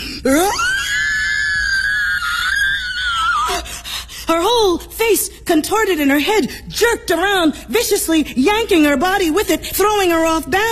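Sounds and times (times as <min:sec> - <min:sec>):
speech: 0:00.2 - 0:00.6, 0:04.3 - 0:10.6
horrible scream: 0:00.3 - 0:03.5.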